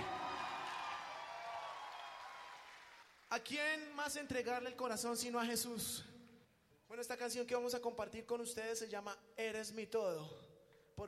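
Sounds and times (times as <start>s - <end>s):
audience applause: 0.0s - 3.3s
speech: 3.3s - 6.2s, 6.9s - 11.0s.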